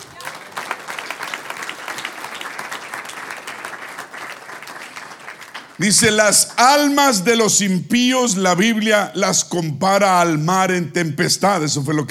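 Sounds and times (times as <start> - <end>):
audience applause: 0.0 - 6.2
speech: 5.8 - 12.0.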